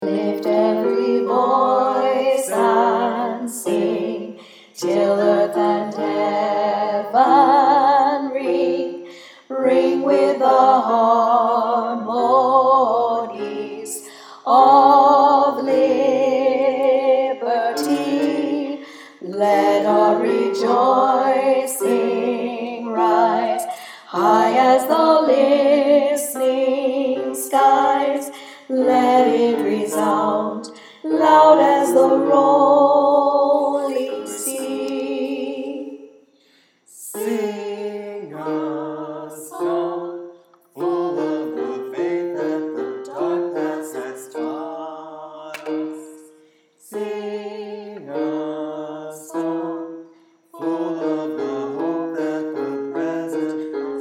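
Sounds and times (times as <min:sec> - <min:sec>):
tenor singing a hymn: 0:00.0 - 0:36.2, 0:36.9 - 0:53.9.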